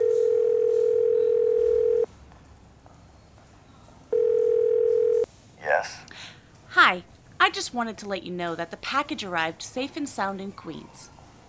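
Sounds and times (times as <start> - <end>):
telephone call ring tone: 0.0 - 2.1, 4.1 - 5.3
speech: 6.9 - 11.2.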